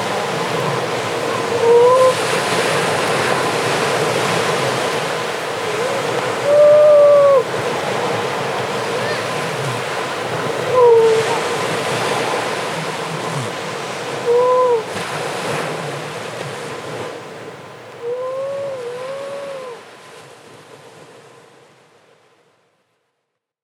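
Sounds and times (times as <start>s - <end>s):
grey seals moaning, wailing and squabbling: 0.0s - 15.0s, 18.0s - 19.9s.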